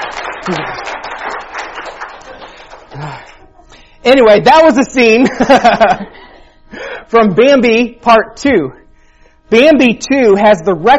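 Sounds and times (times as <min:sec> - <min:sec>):
audience applause: 0:00.0 - 0:03.4
speech: 0:00.4 - 0:00.9, 0:04.1 - 0:06.2, 0:07.1 - 0:08.8, 0:09.5 - 0:10.9
laughter: 0:00.4 - 0:01.0, 0:05.2 - 0:06.5
vocal sounds: 0:02.9 - 0:03.9.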